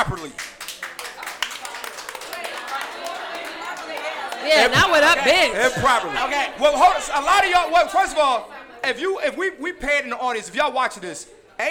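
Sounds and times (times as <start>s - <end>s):
applause: 0.0s - 4.9s
speech: 4.5s - 11.6s.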